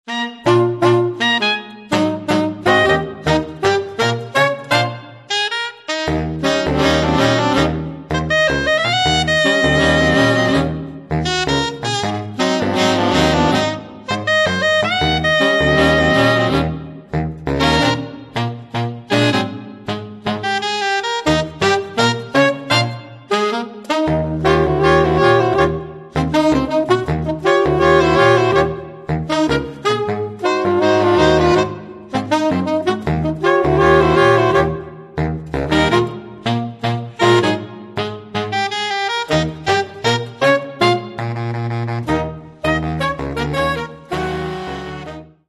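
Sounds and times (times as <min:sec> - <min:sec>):
saxophone: 0:00.0 - 0:45.4.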